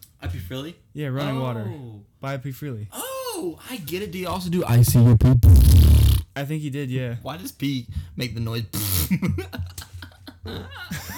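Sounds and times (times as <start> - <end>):
speech: 0.2 - 9.8, 10.4 - 11.1
fart: 4.7 - 6.2, 8.8 - 9.1.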